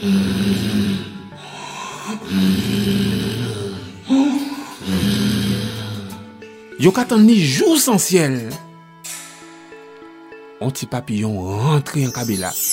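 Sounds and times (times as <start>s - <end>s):
loud rhythmic snoring: 0.0s - 6.2s
speech: 6.8s - 8.7s, 10.6s - 12.7s.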